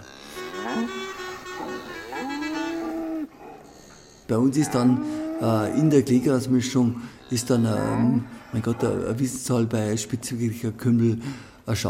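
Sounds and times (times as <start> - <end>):
cow mooing: 0.0 - 9.2
speech: 4.3 - 11.8.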